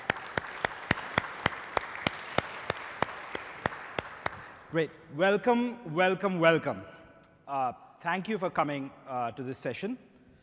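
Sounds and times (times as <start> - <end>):
audience applause: 0.0 - 4.6
sharp evenly spaced claps in a quick regular rhythm: 0.0 - 4.8
speech: 4.7 - 10.1.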